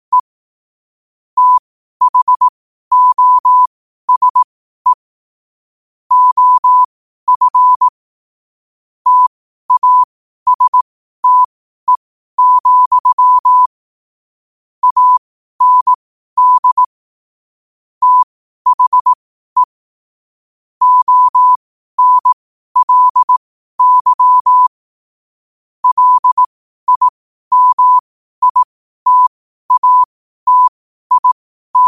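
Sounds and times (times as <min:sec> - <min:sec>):
morse code at 5 wpm: 0:01.4 - 0:05.0, 0:06.1 - 0:07.9, 0:09.1 - 0:13.7, 0:14.8 - 0:16.9, 0:18.0 - 0:19.7, 0:20.8 - 0:24.7, 0:25.8 - 0:31.8.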